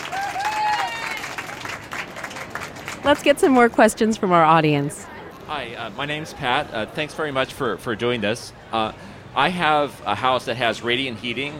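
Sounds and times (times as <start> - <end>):
audience applause after a panel of experts: 0.0 - 3.4
speech: 3.1 - 11.5.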